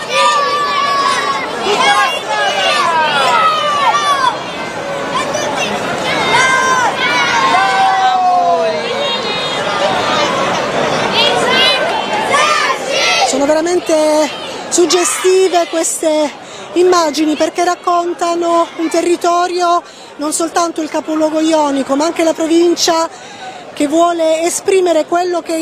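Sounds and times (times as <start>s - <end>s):
children's voices cheering in a crowd: 0.0s - 13.3s
speech: 13.7s - 25.6s.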